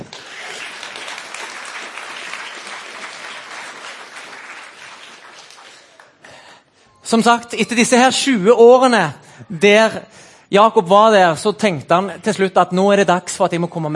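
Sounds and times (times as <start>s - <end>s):
audience applause: 0.0s - 6.2s
speech: 7.1s - 13.9s.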